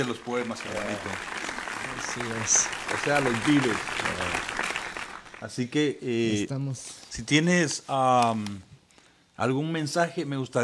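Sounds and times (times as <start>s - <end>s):
speech: 0.0s - 4.6s, 5.4s - 8.7s, 9.4s - 10.6s
audience applause: 0.0s - 5.7s.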